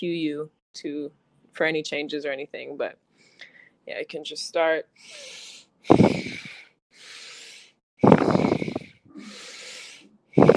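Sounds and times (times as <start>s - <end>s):
speech: 0.0s - 7.2s
steady breathing in and out through the nose: 5.0s - 10.5s.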